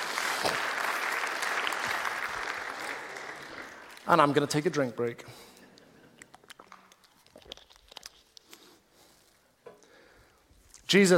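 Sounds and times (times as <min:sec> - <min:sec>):
room full of people applauding: 0:00.0 - 0:04.6
speech: 0:00.4 - 0:00.6, 0:04.1 - 0:05.5, 0:10.9 - 0:11.1.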